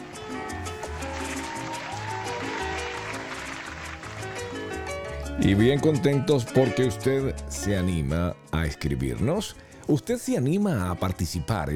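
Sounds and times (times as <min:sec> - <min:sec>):
crowd clapping: 0:00.6 - 0:05.3
speech: 0:05.4 - 0:11.7.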